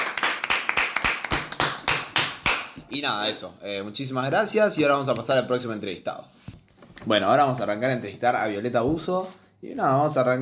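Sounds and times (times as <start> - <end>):
small group clapping after an interview: 0.0 - 2.8
speech: 2.9 - 6.4, 7.0 - 10.4.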